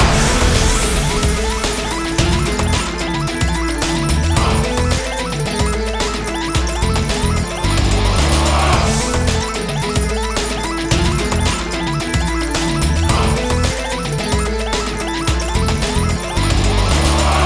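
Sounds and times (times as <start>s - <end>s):
big win music loop: 0.0s - 17.4s.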